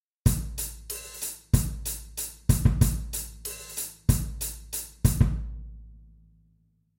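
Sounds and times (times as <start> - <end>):
cymbal: 0.3 - 5.3.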